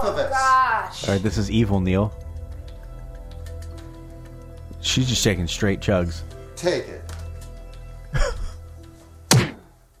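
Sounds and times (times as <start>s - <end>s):
speech: 0.0s - 2.3s, 4.9s - 7.1s
slap sound effects: 9.3s - 9.8s.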